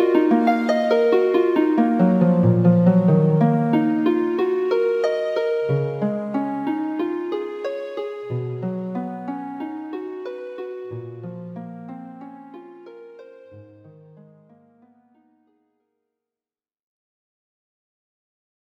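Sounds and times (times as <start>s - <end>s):
harp: 0.0s - 14.5s.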